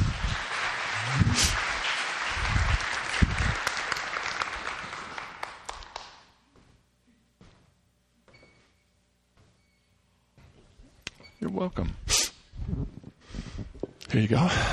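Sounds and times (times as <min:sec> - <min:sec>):
audience clapping at a community church gathering: 0:00.0 - 0:06.4
speech: 0:11.6 - 0:12.1, 0:14.1 - 0:14.7.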